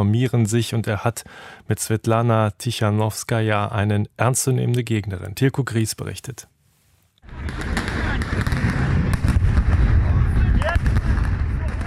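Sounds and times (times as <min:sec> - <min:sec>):
speech: 0:00.0 - 0:06.5
stun grenades exploding: 0:07.3 - 0:10.0, 0:10.6 - 0:11.8.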